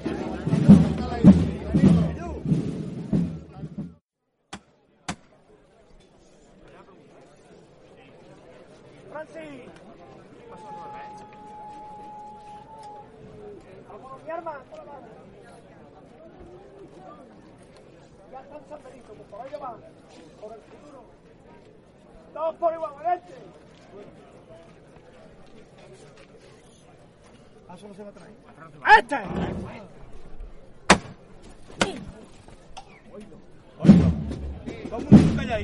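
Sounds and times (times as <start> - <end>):
people talking loudly at a procession in the San Benito neighborhood: 0.0 - 4.0, 4.8 - 35.6
low murmur of voices: 0.0 - 35.6
whistle-like tone: 10.5 - 13.3.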